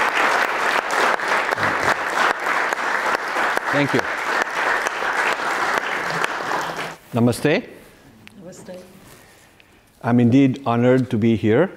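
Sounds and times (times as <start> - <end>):
audience applause: 0.0 - 7.0
speech: 3.8 - 4.2, 7.1 - 7.8, 10.0 - 11.7.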